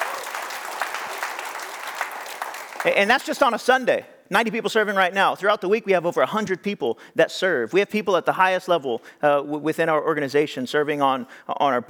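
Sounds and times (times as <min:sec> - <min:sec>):
crowd applauding: 0:00.0 - 0:03.7
speech: 0:02.8 - 0:11.8.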